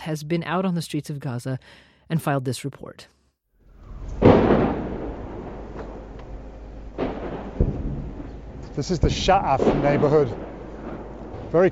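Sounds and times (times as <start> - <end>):
speech: 0.0 - 3.2, 8.8 - 10.5, 11.5 - 11.7
sharper smaller bangs: 3.6 - 11.7
rocket impact in the Sha'af neighborhood near Gaza City: 3.7 - 11.7
faint cracks: 3.8 - 11.7.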